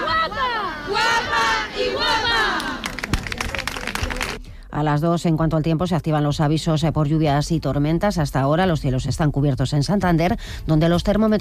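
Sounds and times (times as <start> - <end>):
crowd cheering at a religious procession: 0.0 - 4.4
scattered clapping: 2.2 - 4.4
sharp percussive cracks: 2.8 - 4.4
speech: 4.8 - 11.3.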